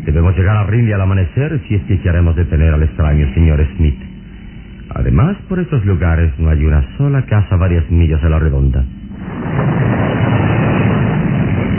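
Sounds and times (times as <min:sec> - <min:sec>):
speech: 0:00.0 - 0:04.1, 0:04.9 - 0:09.9
heavy rain: 0:09.1 - 0:11.7
thunder: 0:09.1 - 0:11.7.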